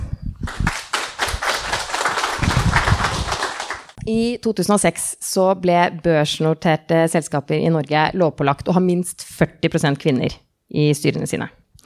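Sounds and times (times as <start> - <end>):
crowd applause: 0.5 - 4.0
speech: 4.1 - 11.8.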